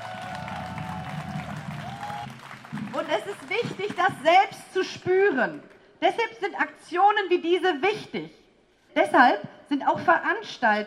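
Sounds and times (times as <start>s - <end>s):
audience clapping at a union rally: 0.0s - 4.2s
speech: 3.0s - 8.4s, 9.0s - 10.8s.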